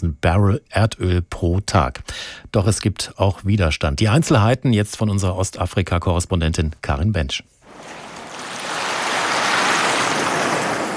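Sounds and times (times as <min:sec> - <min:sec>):
speech: 0:00.0 - 0:08.0
surf washing onto shore: 0:07.7 - 0:10.9.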